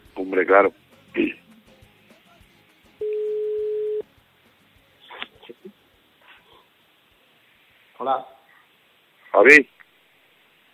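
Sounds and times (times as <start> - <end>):
speech: 0.2 - 1.4, 8.1 - 8.3, 9.4 - 9.7
telephone ringback tone while placing a call to a friend: 3.0 - 4.0.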